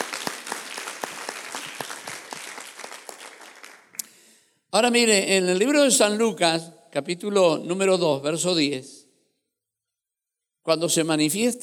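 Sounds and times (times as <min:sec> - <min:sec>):
audience applause: 0:00.0 - 0:04.0
speech: 0:04.8 - 0:09.0, 0:10.6 - 0:11.6.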